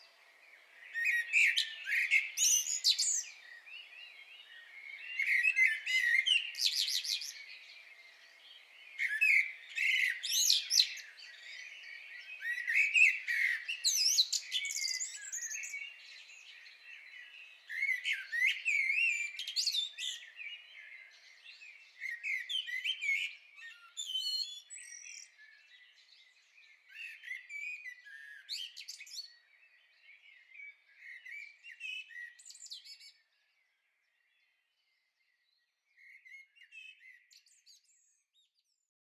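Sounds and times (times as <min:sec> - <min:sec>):
common blackbird singing: 0:00.0 - 0:38.8.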